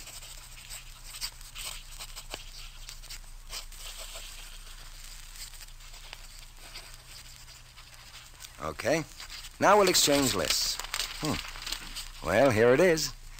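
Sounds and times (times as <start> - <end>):
pen scratching across paper writing a list: 0.0 - 8.4
speech: 8.6 - 11.5, 12.2 - 13.2.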